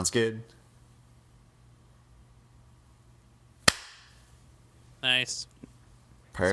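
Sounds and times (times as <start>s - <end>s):
speech: 0.0s - 0.6s, 5.0s - 5.5s, 6.4s - 6.5s
hand clap for sync marker: 3.7s - 4.1s.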